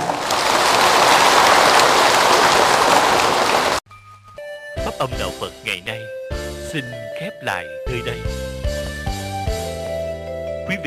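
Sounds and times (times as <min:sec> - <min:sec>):
loud audience applause: 0:00.0 - 0:03.8
speech: 0:05.0 - 0:08.7.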